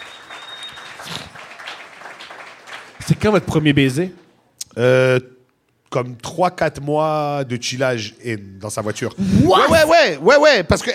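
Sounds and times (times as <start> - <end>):
audience applause for a couple celebrating their relationship: 0.0 - 3.8
speech: 3.1 - 4.2, 4.8 - 5.3, 5.9 - 10.9.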